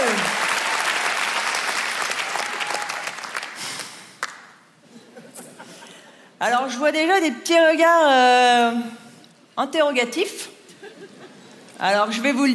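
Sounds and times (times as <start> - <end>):
audience cheering: 0.0 - 3.5
large audience applauding: 0.0 - 4.5
speech: 6.4 - 9.0, 9.6 - 10.4, 11.8 - 12.5.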